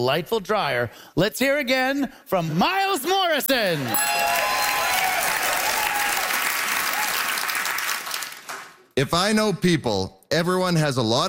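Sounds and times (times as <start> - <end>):
speech: 0.0 - 4.6, 9.0 - 11.2
theater audience applauding: 3.7 - 8.9.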